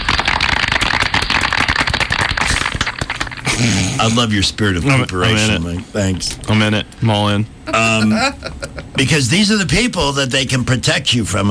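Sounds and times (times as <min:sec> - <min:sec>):
crowd clapping: 0:00.0 - 0:03.6
speech: 0:03.6 - 0:11.4.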